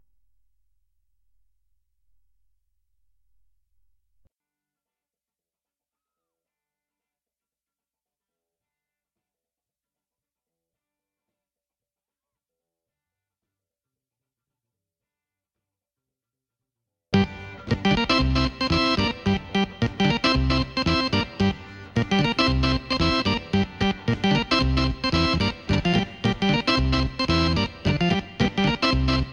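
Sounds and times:
keyboard playing: 0:17.2 - 0:29.3.

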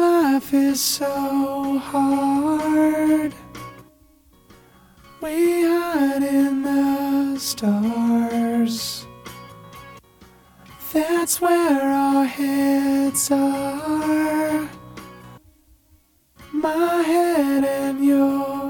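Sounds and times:
person singing: 0:00.0 - 0:03.6, 0:05.2 - 0:09.1, 0:10.7 - 0:14.9, 0:16.5 - 0:18.6.

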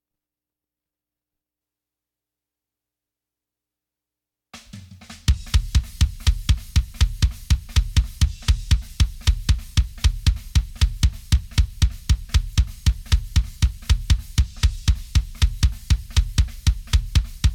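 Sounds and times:
kick drum: 0:05.1 - 0:17.5.

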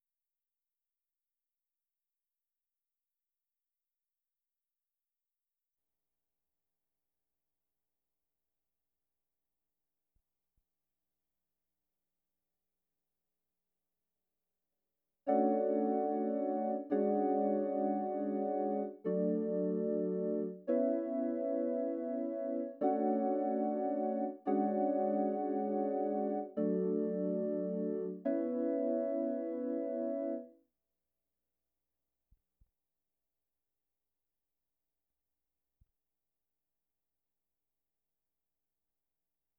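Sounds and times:
Rhodes electric piano: 0:15.3 - 0:30.5.

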